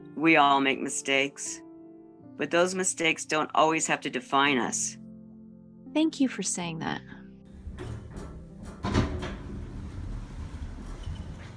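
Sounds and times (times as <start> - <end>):
speech: 0.2 - 1.6, 2.4 - 5.0, 6.0 - 7.2
elevator doors sliding open: 7.5 - 11.5.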